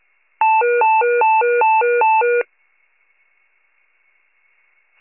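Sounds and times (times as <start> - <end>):
fire pager alert: 0.4 - 2.5.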